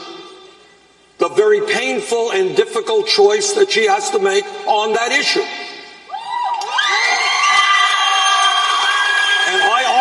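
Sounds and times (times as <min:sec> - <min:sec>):
speech: 0:01.2 - 0:05.6
crowd cheering with shrill high-pitched voices: 0:06.1 - 0:09.9.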